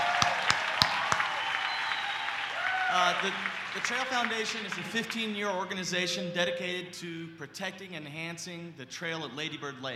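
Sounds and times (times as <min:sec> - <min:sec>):
small crowd clapping: 0:00.0 - 0:04.9
speech: 0:02.9 - 0:09.9.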